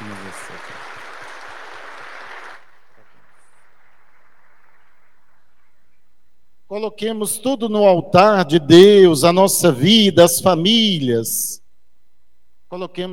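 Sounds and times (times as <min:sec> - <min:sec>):
audience applauding: 0:00.0 - 0:05.8
speech: 0:06.7 - 0:11.6, 0:12.7 - 0:13.1.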